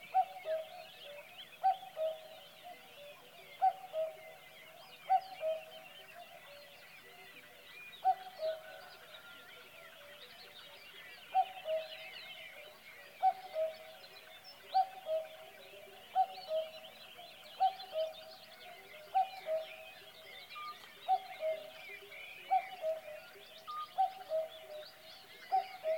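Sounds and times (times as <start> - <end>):
cuckoo calling: 0.0 - 7.2, 8.0 - 9.4, 11.3 - 17.0, 17.6 - 25.9
twittering songbirds: 0.0 - 25.9.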